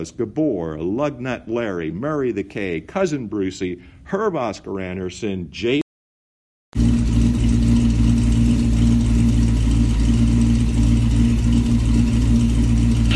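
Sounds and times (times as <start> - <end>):
speech: 0.0 - 5.8
1957 Buick Special engine turning over and idling: 6.8 - 13.1.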